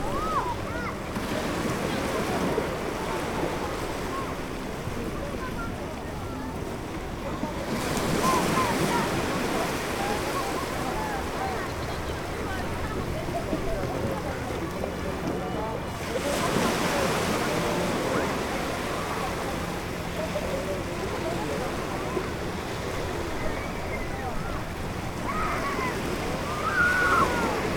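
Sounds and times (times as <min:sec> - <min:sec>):
ocean waves on a summer beach: 0:00.0 - 0:27.7.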